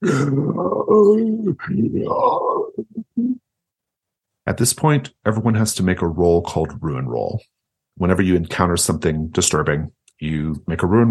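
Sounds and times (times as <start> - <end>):
human voice imitating a bear's roar: 0.0 - 3.4
speech: 0.0 - 3.4, 4.5 - 11.0.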